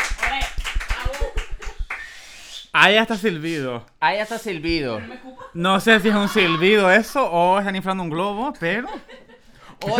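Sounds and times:
audience clapping in rhythm: 0.0s - 2.2s
speech: 2.8s - 9.2s, 9.8s - 9.9s
laughter: 4.9s - 7.4s, 8.6s - 9.9s.

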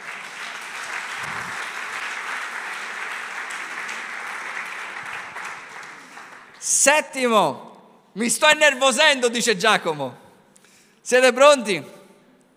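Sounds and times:
audience applause: 0.0s - 6.6s
speech: 6.8s - 10.2s, 11.0s - 12.0s.

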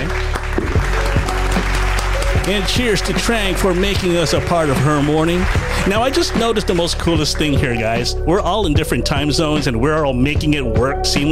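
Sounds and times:
round of applause: 0.0s - 7.6s
speech: 2.5s - 11.3s.

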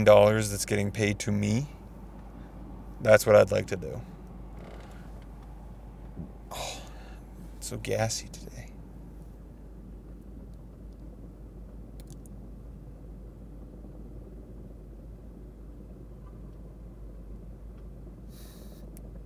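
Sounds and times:
speech: 0.0s - 1.8s, 3.0s - 4.1s, 7.6s - 8.6s
distant helicopter: 0.0s - 19.2s.

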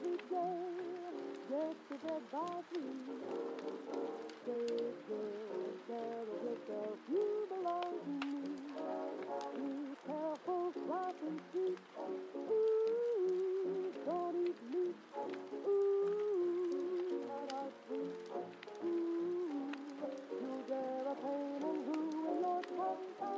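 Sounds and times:
fire crackling: 0.0s - 23.3s
heavy rain: 0.0s - 23.3s
oldies song playing from another room: 0.0s - 23.3s.

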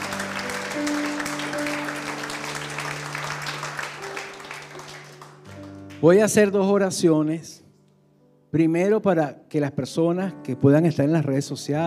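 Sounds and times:
audience applauding: 0.0s - 6.4s
speech: 6.0s - 7.6s, 8.5s - 11.8s.

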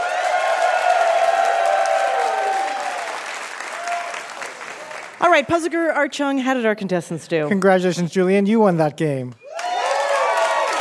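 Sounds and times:
audience applause: 0.0s - 5.3s, 9.5s - 10.7s
speech: 5.2s - 9.4s.

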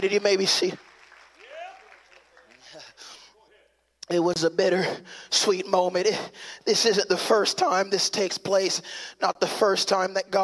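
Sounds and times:
speech: 0.0s - 0.9s, 4.1s - 10.4s
audience clapping hands: 0.0s - 3.3s.

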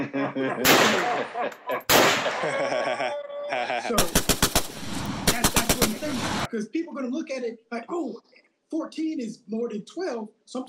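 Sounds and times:
laughter: 0.0s - 4.3s
speech: 0.4s - 3.0s, 6.5s - 10.6s
gunshot sound effect: 0.6s - 2.5s, 4.0s - 6.5s.

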